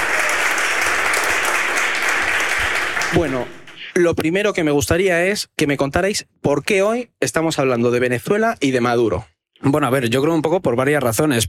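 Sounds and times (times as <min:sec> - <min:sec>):
live audience applause: 0:00.0 - 0:03.9
speech: 0:03.1 - 0:11.4.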